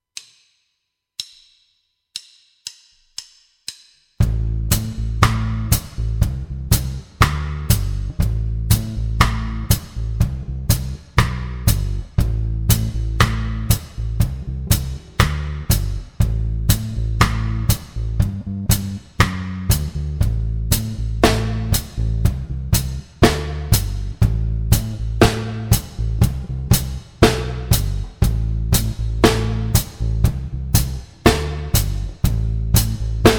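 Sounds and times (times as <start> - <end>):
rockers steppers reggae drum beat: 4.2 - 33.3.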